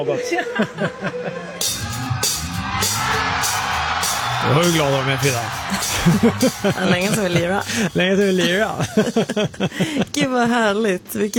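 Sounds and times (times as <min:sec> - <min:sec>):
laughter: 0:00.0 - 0:01.9, 0:03.9 - 0:10.8
speech: 0:00.0 - 0:03.6, 0:04.4 - 0:11.3
concert audience cheering: 0:01.0 - 0:09.4.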